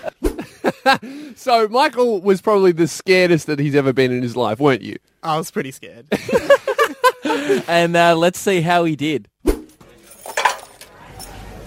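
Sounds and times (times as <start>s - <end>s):
laughter: 0.0s - 1.2s, 6.1s - 7.7s
speech: 0.8s - 6.7s, 7.4s - 9.3s
box of pens poured out onto the floor: 10.3s - 10.9s.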